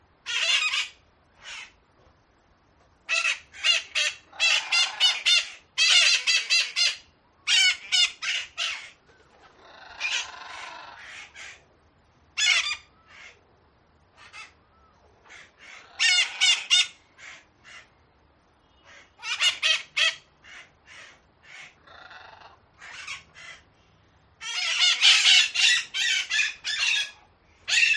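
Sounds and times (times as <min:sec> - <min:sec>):
parrots squawking: 0:00.2 - 0:01.8, 0:03.1 - 0:11.7, 0:12.4 - 0:13.4, 0:14.1 - 0:14.6, 0:15.2 - 0:17.9, 0:18.8 - 0:23.7, 0:24.4 - 0:27.9.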